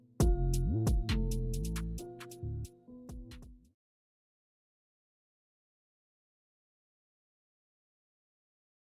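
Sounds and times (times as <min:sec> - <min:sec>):
UK drill instrumental beat: 0:00.1 - 0:03.6.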